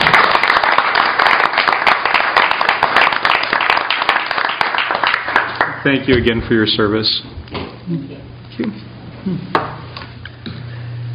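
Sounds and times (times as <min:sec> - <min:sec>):
audience applause: 0:00.0 - 0:05.9
speech: 0:05.8 - 0:09.6.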